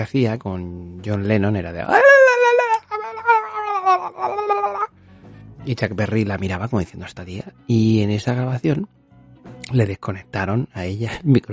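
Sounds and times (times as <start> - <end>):
speech: 0.0 - 2.3, 5.6 - 9.0, 9.7 - 11.5
slowed-down recording of a woman screaming: 1.9 - 4.9.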